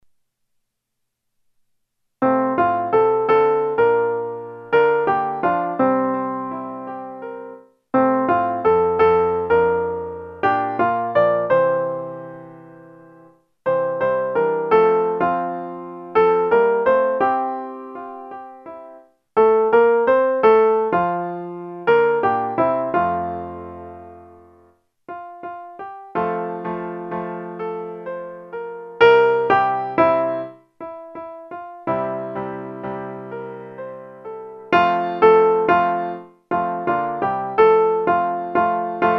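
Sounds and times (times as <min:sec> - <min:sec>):
soprano instrumental music: 0:02.2 - 0:39.1.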